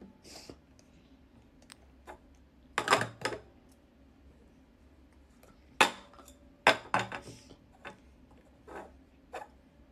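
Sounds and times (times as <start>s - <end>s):
chop cups from a cups and balls magic trick clinking and tapping: 2.8s - 3.4s, 5.8s - 8.0s.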